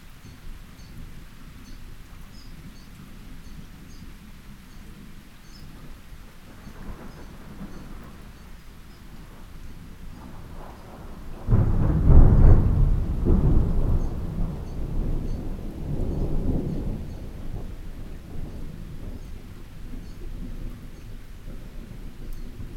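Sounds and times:
thunder striking: 0:10.1 - 0:22.7.

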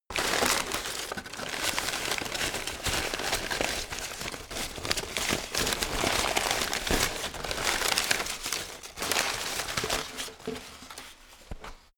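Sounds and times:
paper rustle: 0:00.1 - 0:11.9.

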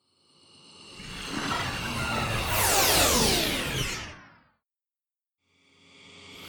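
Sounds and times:
disintegrating effect: 0:01.0 - 0:04.2.

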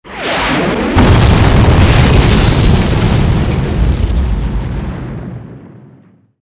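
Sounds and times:
big explosion in a war zone: 0:00.1 - 0:06.4.

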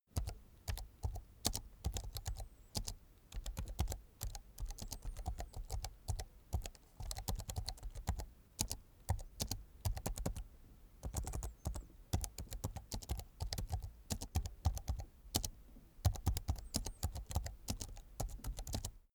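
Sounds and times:
slow soft typing on a laptop keyboard: 0:00.1 - 0:19.1.

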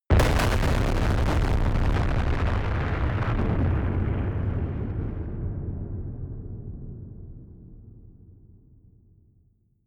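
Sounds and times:
distorted explosions: 0:00.1 - 0:06.2.

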